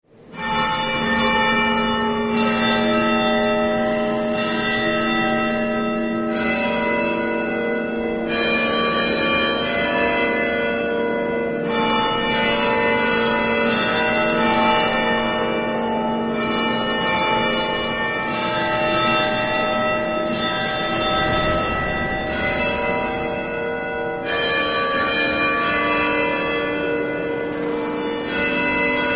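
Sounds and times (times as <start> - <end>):
bells ringing: 0.2 - 29.1.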